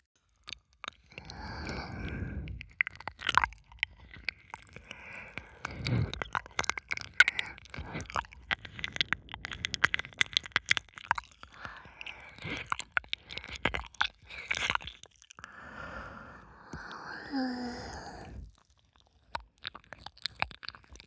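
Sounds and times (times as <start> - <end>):
ear licking on the right side: 0.5 - 21.0.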